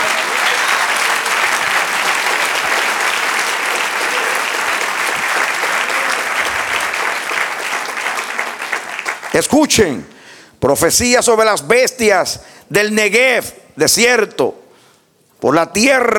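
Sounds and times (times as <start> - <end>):
audience applause: 0.0 - 9.5
speech: 9.4 - 14.6, 15.4 - 16.1.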